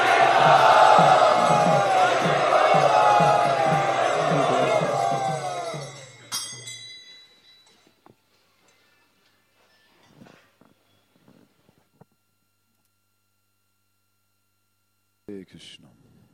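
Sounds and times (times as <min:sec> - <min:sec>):
audience chanting loudly in welcome at a kirtan: 0:00.0 - 0:06.3
rhythmic pulse: 0:00.0 - 0:07.0.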